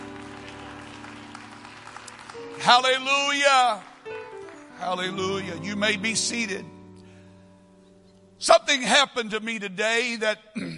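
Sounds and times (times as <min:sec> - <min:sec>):
audience clapping hands: 0:00.0 - 0:05.4
speech: 0:02.6 - 0:03.9, 0:04.8 - 0:06.7, 0:08.4 - 0:10.7.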